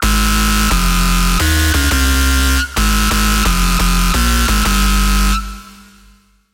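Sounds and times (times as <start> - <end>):
Sylenth1 synth lead: 0.0 - 6.2.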